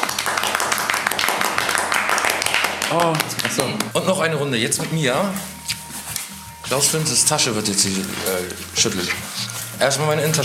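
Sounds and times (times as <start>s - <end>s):
applause for the winner of a game: 0.0s - 4.0s
speech: 2.9s - 5.8s, 6.7s - 10.4s.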